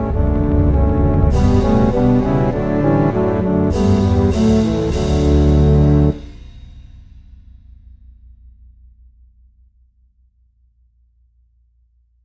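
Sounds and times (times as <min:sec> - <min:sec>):
double bass track with melody: 0:00.0 - 0:06.2.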